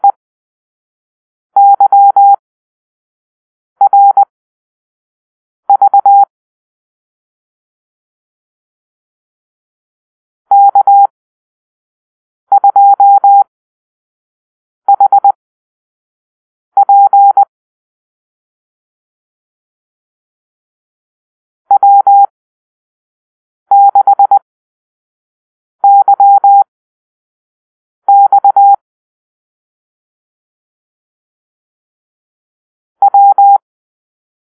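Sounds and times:
morse code call-sign beeps: 1.6 - 2.4, 3.8 - 4.3, 5.7 - 6.2, 10.5 - 11.1, 12.5 - 13.5, 14.9 - 15.4, 16.8 - 17.5, 21.7 - 22.3, 23.7 - 24.4, 25.8 - 26.7, 28.1 - 28.8, 33.0 - 33.6.

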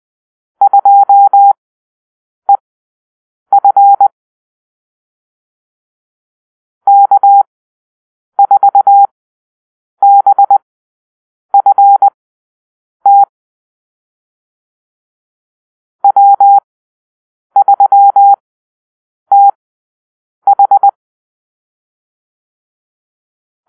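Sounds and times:
morse code call-sign drill: 0.6 - 1.6, 3.5 - 4.1, 6.9 - 7.5, 8.4 - 9.1, 10.0 - 10.6, 11.6 - 12.2, 13.1 - 13.3, 16.0 - 16.6, 17.6 - 18.4, 19.3 - 19.6, 20.5 - 21.0.

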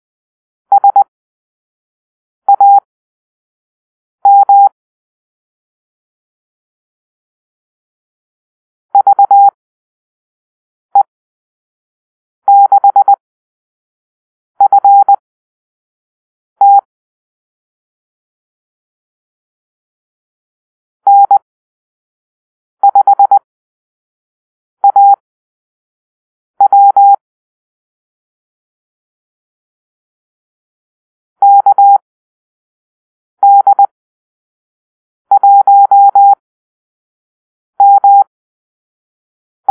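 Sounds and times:
morse code call-sign beeps: 0.7 - 1.0, 2.5 - 2.8, 4.3 - 4.7, 9.0 - 9.6, 12.5 - 13.2, 14.6 - 15.2, 16.6 - 16.8, 21.1 - 21.4, 22.8 - 23.4, 24.8 - 25.2, 26.6 - 27.2, 31.4 - 32.0, 33.4 - 33.9, 35.3 - 36.4, 37.8 - 38.3.

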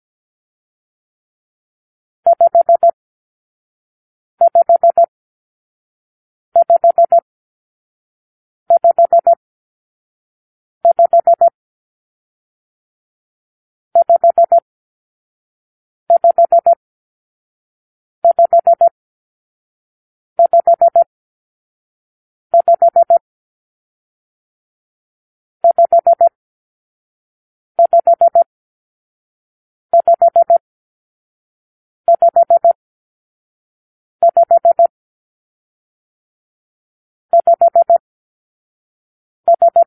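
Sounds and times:
morse code for numeral five: 2.3 - 3.0, 4.4 - 5.1, 6.6 - 7.2, 8.7 - 9.4, 10.8 - 11.6, 14.0 - 14.6, 16.1 - 16.8, 18.2 - 18.9, 20.4 - 21.1, 22.6 - 23.2, 25.6 - 26.4, 27.8 - 28.5, 29.9 - 30.6, 32.1 - 32.8, 34.2 - 34.9, 37.4 - 38.0, 39.5 - 39.8.

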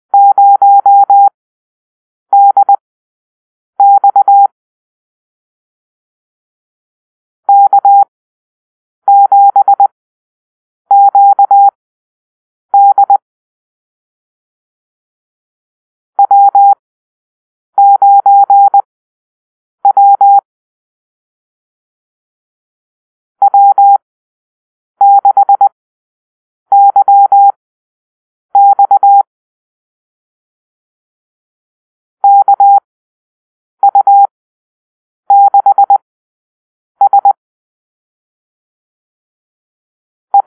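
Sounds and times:
morse code call-sign beeps: 0.2 - 1.3, 2.4 - 2.8, 3.8 - 4.5, 7.5 - 8.1, 9.1 - 9.9, 10.9 - 11.8, 12.8 - 13.2, 16.2 - 16.8, 17.8 - 18.9, 19.8 - 20.4, 25.0 - 25.7, 26.7 - 27.6, 28.6 - 29.3, 32.2 - 32.9, 33.8 - 34.3, 35.3 - 36.0, 37.0 - 37.4.

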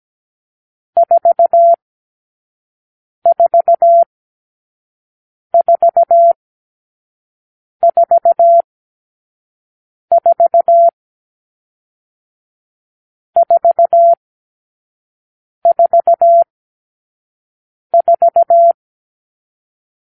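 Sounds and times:
morse code beeps: 1.0 - 1.8, 3.3 - 4.1, 5.6 - 6.4, 7.8 - 8.6, 10.1 - 11.0, 13.4 - 14.2, 15.7 - 16.5, 18.0 - 18.8.

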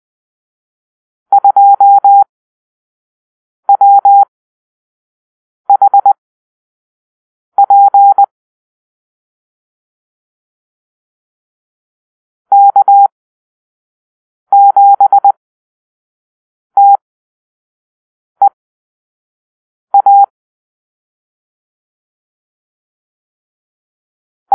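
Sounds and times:
morse code beeps in a call-sign drill: 1.3 - 2.3, 3.7 - 4.2, 5.7 - 6.2, 7.6 - 8.3, 12.5 - 13.1, 14.5 - 15.4, 16.8 - 17.0, 20.0 - 20.3.

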